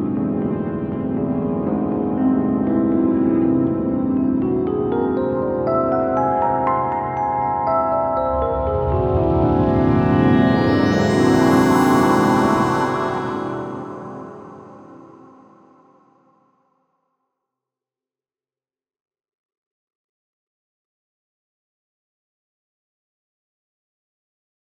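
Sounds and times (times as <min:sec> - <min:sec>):
dreamy music: 0:00.0 - 0:15.9.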